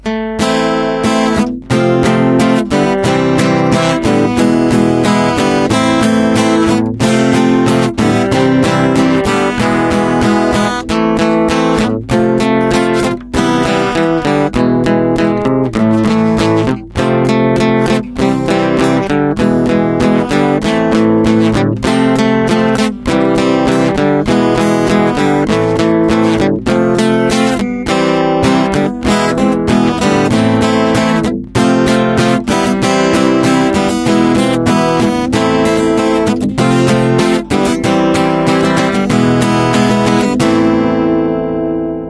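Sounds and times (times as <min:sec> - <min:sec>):
guitar: 0:00.0 - 0:42.0.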